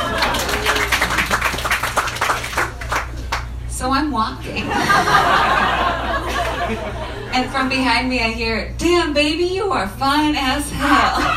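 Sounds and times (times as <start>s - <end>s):
laughter: 0.0s - 1.8s, 4.5s - 7.5s, 10.7s - 11.3s
audience clapping: 0.0s - 3.6s
speech: 4.0s - 5.6s, 6.7s - 11.3s.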